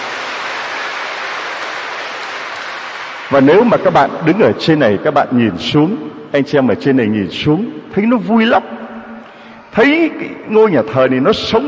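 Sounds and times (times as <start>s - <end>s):
audience applauding: 0.0s - 3.7s
speech: 3.3s - 8.8s, 9.7s - 11.6s.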